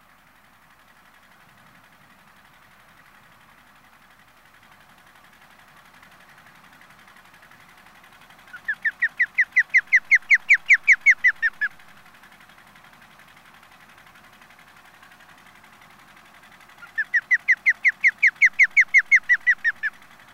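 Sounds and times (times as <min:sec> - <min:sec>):
osprey giving short downslurred whistled chirps: 0:08.5 - 0:11.8, 0:16.8 - 0:20.0.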